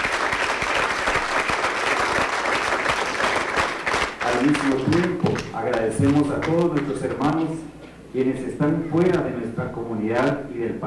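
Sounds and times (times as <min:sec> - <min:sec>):
audience applause: 0:00.0 - 0:05.5
speech: 0:04.4 - 0:10.8.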